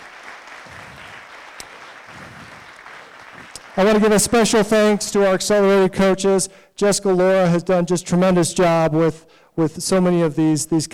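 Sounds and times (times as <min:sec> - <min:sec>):
audience applause: 0:00.0 - 0:04.5
speech: 0:03.8 - 0:10.9.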